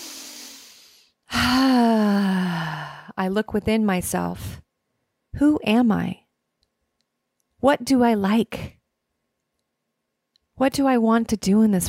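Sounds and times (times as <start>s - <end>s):
deep breath: 0.0s - 3.2s
speech: 3.2s - 4.6s, 5.4s - 6.2s, 7.6s - 8.8s, 10.6s - 11.8s.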